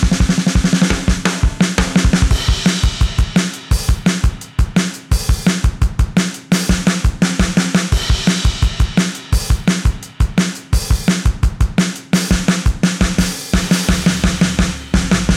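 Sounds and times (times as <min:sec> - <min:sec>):
drums: 0:00.0 - 0:15.3.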